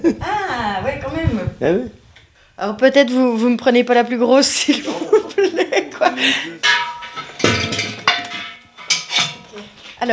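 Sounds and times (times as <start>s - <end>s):
speech: 0.0s - 0.3s, 1.6s - 2.0s, 2.6s - 5.0s, 6.0s - 6.7s
laughter: 4.7s - 6.6s
metal bells clanking and ringing as handled: 6.6s - 9.2s.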